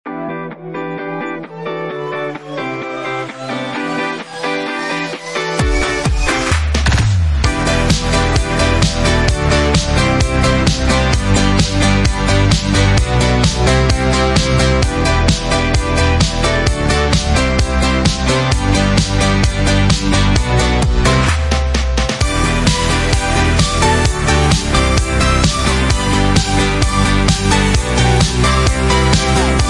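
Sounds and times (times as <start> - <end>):
dance music: 0.1 - 29.6.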